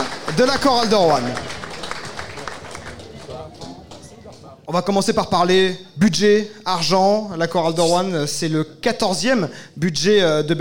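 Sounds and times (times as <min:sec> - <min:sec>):
audience applause: 0:00.0 - 0:04.6
speech: 0:00.4 - 0:01.5, 0:04.7 - 0:10.6.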